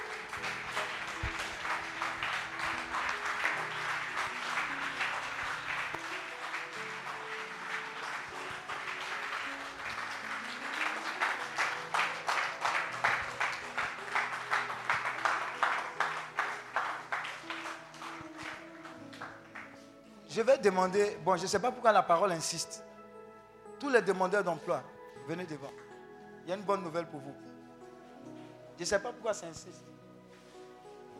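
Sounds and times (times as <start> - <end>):
church congregation clapping during a service: 0.0 - 21.5
speech: 20.4 - 22.9, 23.8 - 25.8, 26.4 - 27.5, 28.8 - 29.9.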